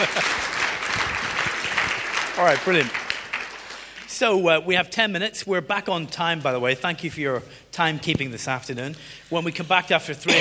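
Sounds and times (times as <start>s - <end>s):
speech: 0.0s - 0.5s, 2.4s - 3.0s, 4.2s - 10.3s
audience clapping: 0.0s - 4.4s.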